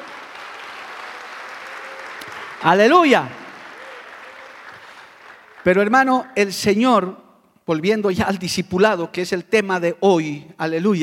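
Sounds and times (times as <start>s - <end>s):
audience applause: 0.0s - 5.9s
speech: 2.6s - 3.4s, 5.6s - 11.0s.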